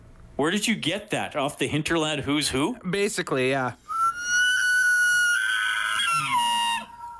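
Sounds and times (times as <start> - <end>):
speech: 0.4 - 3.8
elk bugle, loud high whistling call: 3.9 - 7.1.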